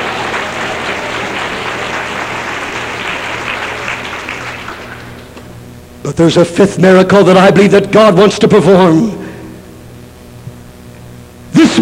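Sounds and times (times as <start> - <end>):
audience clapping: 0.0 - 5.5
speech: 6.1 - 9.2.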